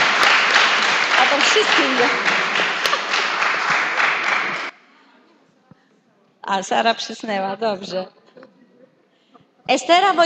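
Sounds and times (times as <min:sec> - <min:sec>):
audience clapping: 0:00.0 - 0:04.8
speech: 0:01.5 - 0:02.3, 0:06.5 - 0:08.2, 0:09.7 - 0:10.2.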